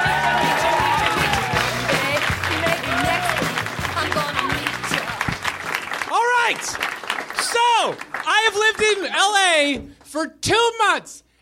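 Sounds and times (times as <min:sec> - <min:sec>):
audience shouts and whoops at a stand-up show: 0:00.0 - 0:02.0, 0:02.7 - 0:03.5
audience applause for a comedian at a stand-up show: 0:00.0 - 0:09.2
speech: 0:08.9 - 0:11.2.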